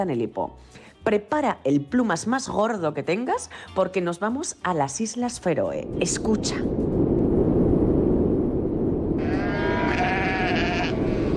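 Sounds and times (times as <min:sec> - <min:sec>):
speech: 0:00.0 - 0:06.9
wind on islands: 0:05.7 - 0:11.3
sheep on islands: 0:09.2 - 0:11.3.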